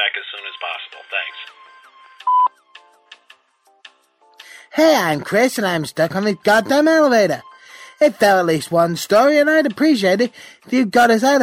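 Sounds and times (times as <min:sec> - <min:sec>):
speech: 0:00.0 - 0:02.4, 0:04.8 - 0:11.4
answering machine beep: 0:02.2 - 0:02.5.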